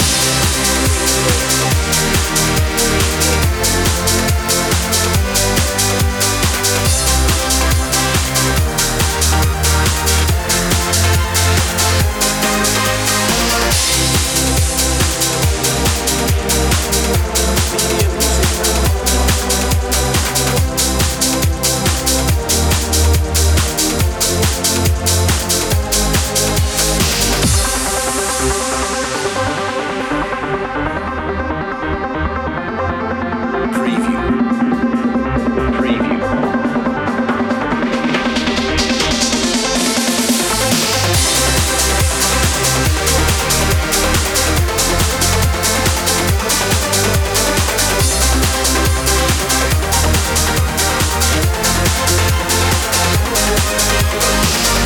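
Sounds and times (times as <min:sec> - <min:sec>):
house music loop: 0:00.0 - 0:54.8.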